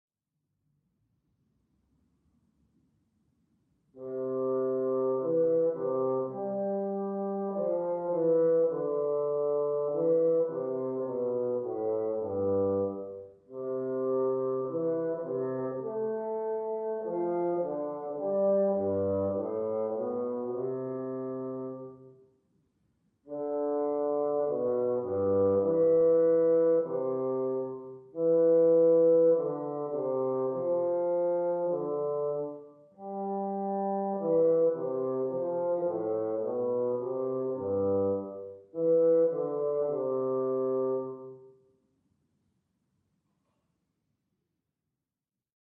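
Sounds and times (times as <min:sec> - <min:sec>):
bassoon playing studies: 0:04.0 - 0:22.1, 0:23.3 - 0:41.4.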